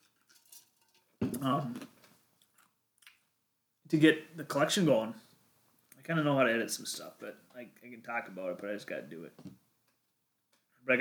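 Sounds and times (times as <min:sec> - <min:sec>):
glass clinking: 0:00.2 - 0:01.4
speech: 0:01.2 - 0:01.8, 0:03.9 - 0:05.2, 0:06.1 - 0:09.6
quiet shuffling: 0:04.4 - 0:09.6.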